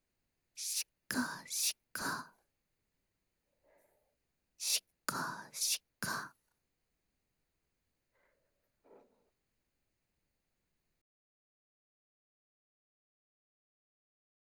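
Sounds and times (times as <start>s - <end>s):
rhythmic hand stroking on the right: 0.6s - 2.2s, 4.6s - 6.3s.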